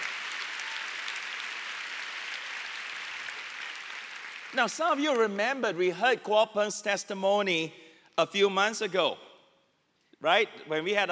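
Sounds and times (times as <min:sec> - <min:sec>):
audience applause: 0:00.0 - 0:05.2
speech: 0:04.5 - 0:09.3, 0:10.2 - 0:11.1.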